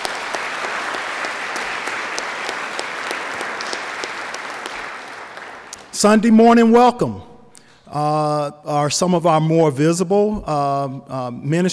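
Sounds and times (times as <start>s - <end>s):
church congregation applauding ministry volunteers during a Sunday service: 0.0s - 6.5s
speech: 6.0s - 7.3s, 7.9s - 11.7s.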